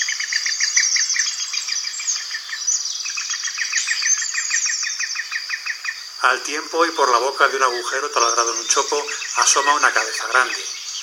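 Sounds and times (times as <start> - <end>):
green woodpecker call: 0.0 - 11.0
speech: 6.2 - 10.8.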